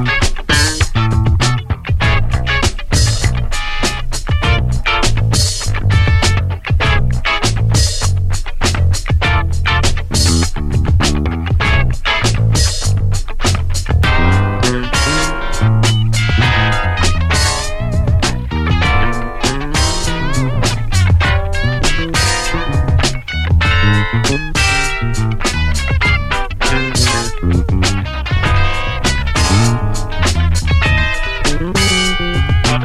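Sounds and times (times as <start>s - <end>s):
retro music jam: 0.0s - 32.8s.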